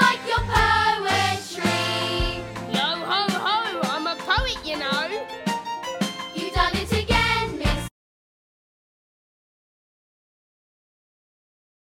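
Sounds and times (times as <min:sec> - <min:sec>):
vocals: 0:00.0 - 0:05.2, 0:06.3 - 0:07.9.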